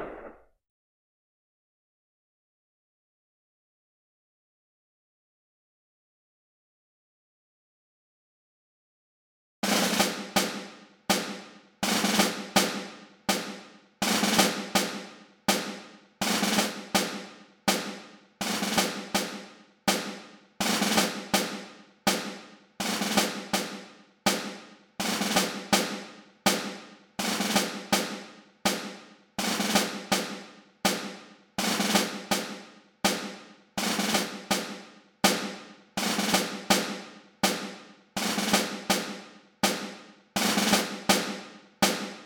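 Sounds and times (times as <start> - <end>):
music: 9.6 - 42.2.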